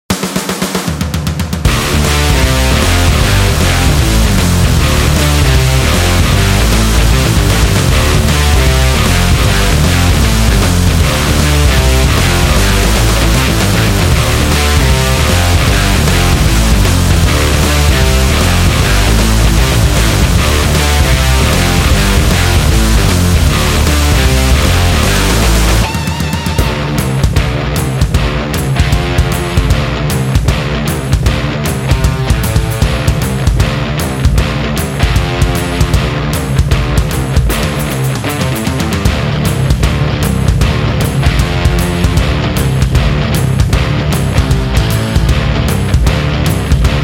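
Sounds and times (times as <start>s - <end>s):
sport rock music: 0.1s - 47.0s.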